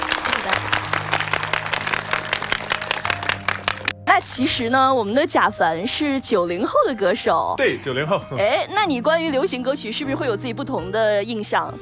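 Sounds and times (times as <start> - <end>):
audience applause: 0.0 - 4.0
speech: 4.2 - 11.7.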